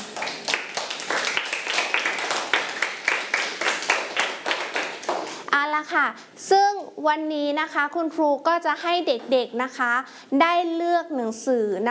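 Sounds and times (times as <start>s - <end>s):
classroom group clapping: 0.0s - 5.5s
speech: 5.8s - 11.8s.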